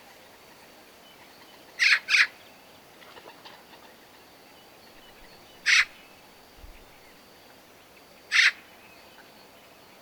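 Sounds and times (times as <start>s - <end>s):
Eurasian magpie Pica pica calling with harsh noisy rasps: 1.8s - 2.3s, 5.6s - 6.0s, 8.3s - 8.6s.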